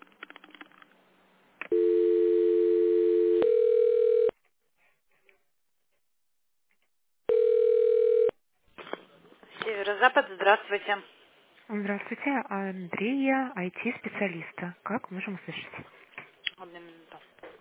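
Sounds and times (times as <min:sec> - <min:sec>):
steady loud low-pitched telephone tone: 0:01.7 - 0:04.3, 0:07.3 - 0:08.4
speech: 0:10.0 - 0:16.0.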